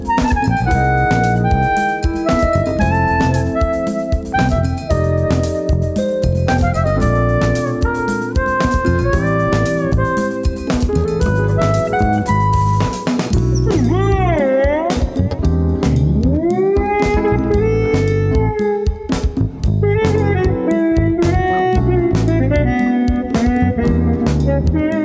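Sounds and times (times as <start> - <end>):
funk music: 0.0 - 25.0.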